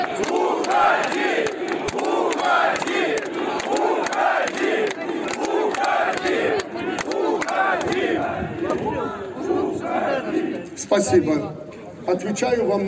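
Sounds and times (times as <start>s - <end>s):
large crowd shouting loudly: 0.0s - 10.7s
speech: 11.0s - 12.8s.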